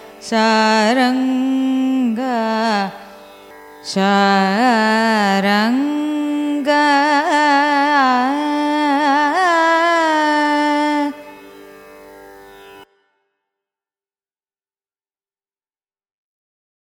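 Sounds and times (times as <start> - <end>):
Carnatic music: 0.0 - 13.4.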